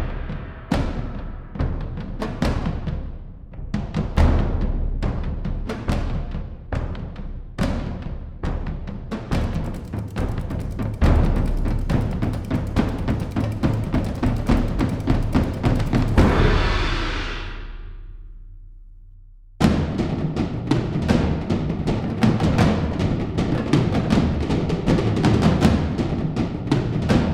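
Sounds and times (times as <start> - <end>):
solo percussion: 0.0 - 27.3.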